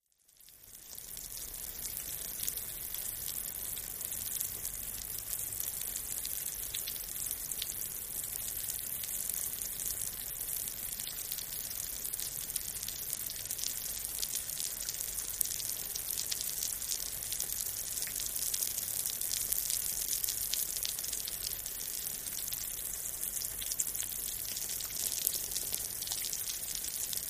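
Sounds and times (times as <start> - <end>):
rain falling on concrete: 0.3 - 27.2.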